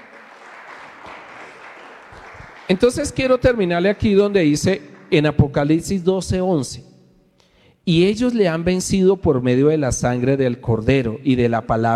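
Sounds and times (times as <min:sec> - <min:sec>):
audience clapping: 0:00.0 - 0:06.0
speech: 0:02.7 - 0:06.9, 0:07.9 - 0:11.9.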